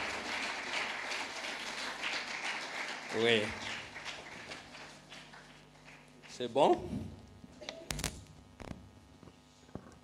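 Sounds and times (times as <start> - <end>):
audience clapping: 0.0 - 6.8
speech: 3.1 - 3.7, 6.4 - 7.2.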